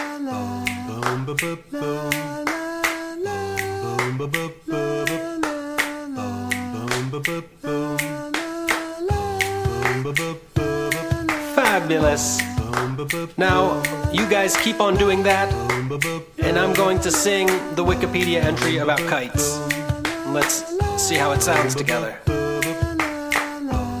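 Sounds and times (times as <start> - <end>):
finger snaps and claps: 0.0 - 15.0, 15.6 - 23.9
speech: 1.0 - 2.5, 7.3 - 7.8, 11.8 - 19.7, 20.3 - 22.4
sustained melodic musical backing: 13.4 - 15.8, 16.4 - 19.6, 20.2 - 22.1.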